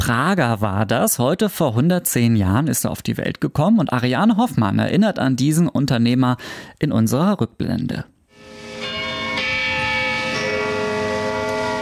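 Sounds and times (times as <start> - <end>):
speech: 0.1 - 8.1
church tower bell striking noon: 8.3 - 11.8.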